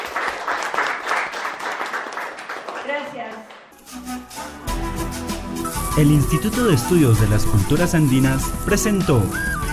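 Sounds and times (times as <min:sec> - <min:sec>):
audience applause at a cultural presentation: 0:00.0 - 0:03.0
speech: 0:02.9 - 0:04.4, 0:06.0 - 0:09.6.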